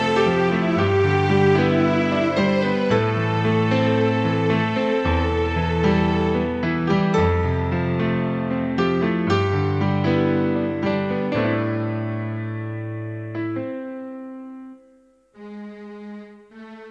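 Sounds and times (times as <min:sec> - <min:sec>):
piano: 0:00.0 - 0:16.9.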